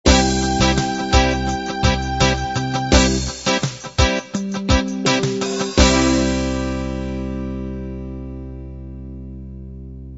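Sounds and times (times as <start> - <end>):
pop ballad ending: 0.1 - 9.5.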